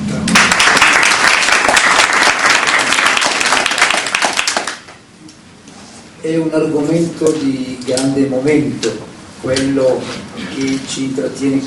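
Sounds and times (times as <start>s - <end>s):
audience applause: 0.3s - 5.0s
speech: 6.2s - 11.6s.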